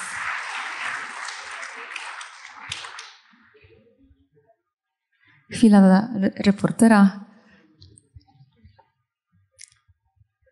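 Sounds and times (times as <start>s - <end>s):
audience applause: 0.0s - 3.5s
speech: 5.5s - 7.2s.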